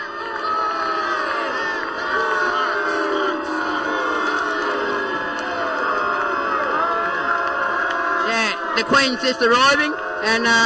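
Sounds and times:
crowd booing: 0.0 - 10.6
speech: 8.8 - 10.6.

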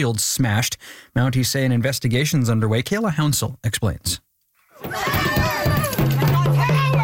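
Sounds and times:
speech: 0.0 - 5.3
angry protesters shouting around a car: 4.8 - 7.0.

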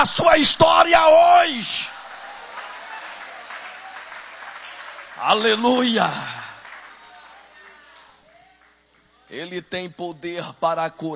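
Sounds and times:
speech: 0.0 - 2.0, 5.2 - 6.3, 9.3 - 11.1
church audience applauding: 1.9 - 8.8.

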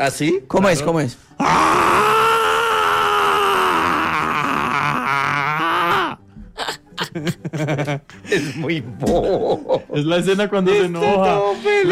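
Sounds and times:
speech: 0.0 - 2.1, 7.2 - 11.9
person imitating a character's angry scream: 1.4 - 6.2
laughter: 6.6 - 10.1.

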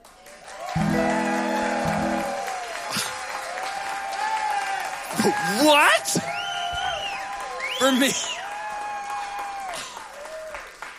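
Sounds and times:
audience applause welcoming a stand-up comedian: 0.0 - 10.9
low music: 0.8 - 2.4
speech: 7.8 - 8.3.

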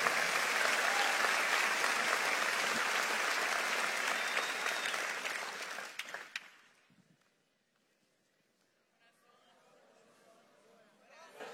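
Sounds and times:
audience applauding loudly: 0.0 - 6.8.

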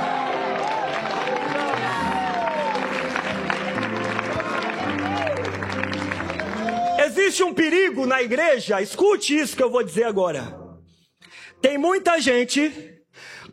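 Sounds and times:
audience shouting praise: 0.0 - 7.5
speech: 7.3 - 10.6, 11.7 - 12.9.

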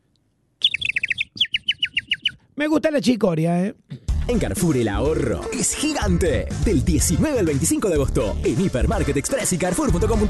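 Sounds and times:
person imitating a chirping bird: 0.6 - 2.4
speech: 2.6 - 10.2.

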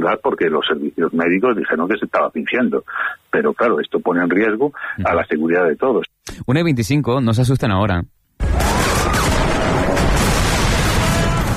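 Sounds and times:
speech: 0.0 - 8.6
video game gunfire: 8.4 - 11.5
video game vehicle explosions: 8.4 - 11.5.

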